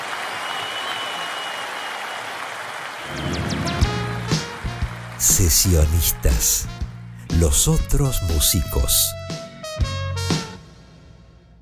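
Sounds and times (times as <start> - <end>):
audience applause: 0.0 - 6.6
sharp whistles: 0.3 - 2.3, 3.0 - 3.9
speech: 3.0 - 3.5, 5.3 - 6.8, 7.4 - 9.2
low thumps: 3.1 - 5.2.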